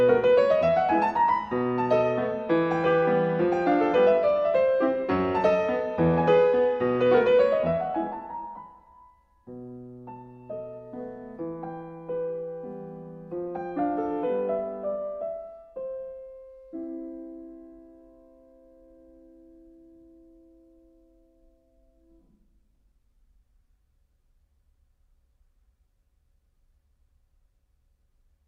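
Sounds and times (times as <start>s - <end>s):
mazurka for piano in C major: 0.0s - 22.5s.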